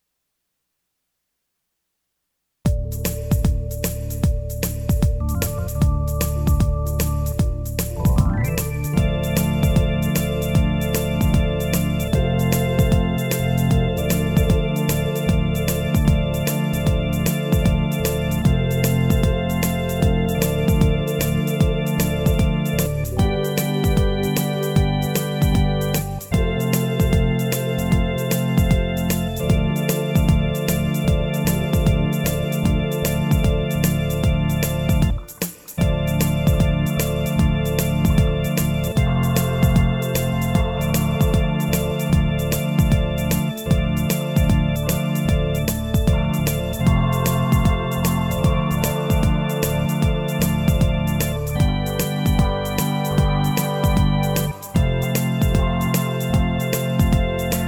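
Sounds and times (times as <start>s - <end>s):
instrumental music: 2.7s - 57.6s.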